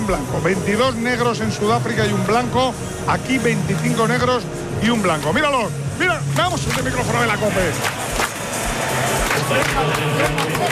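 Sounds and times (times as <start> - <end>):
speech: 0.1 - 8.0, 9.5 - 10.7
stadium crowd rhythmic clapping: 6.3 - 10.7.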